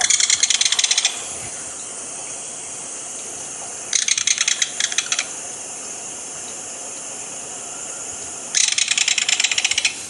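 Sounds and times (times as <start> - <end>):
Belted Kingfisher rattle call: 0.0 - 1.3, 3.9 - 5.3, 8.5 - 10.0
steady hiss: 0.0 - 10.0.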